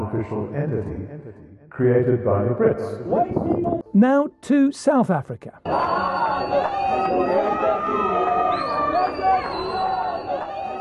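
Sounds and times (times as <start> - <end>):
speech: 0.1 - 8.0
protest crowd in Pretoria chattering and shouting: 5.7 - 10.8.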